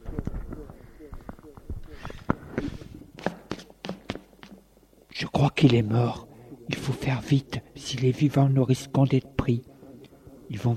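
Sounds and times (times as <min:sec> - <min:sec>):
running footsteps of a man running toward a priest: 0:00.4 - 0:04.6
speech: 0:05.5 - 0:09.7, 0:10.5 - 0:10.7.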